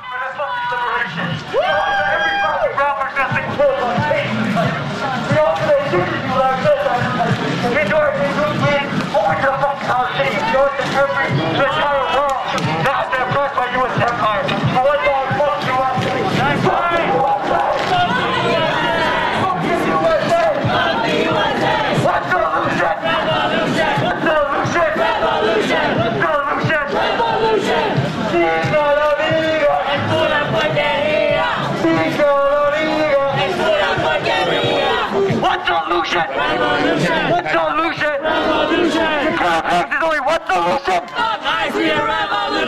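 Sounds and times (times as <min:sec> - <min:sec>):
large crowd shouting and chanting: 0:00.0 - 0:42.6.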